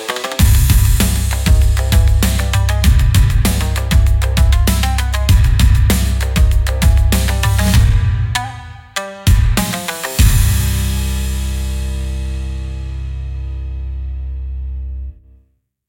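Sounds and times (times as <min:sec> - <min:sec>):
cinematic Japanese-style battle music: 0:00.4 - 0:12.0.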